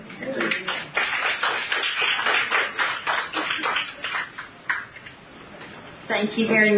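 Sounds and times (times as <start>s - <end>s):
audience clapping: 0.1s - 5.2s
speech: 6.2s - 6.7s.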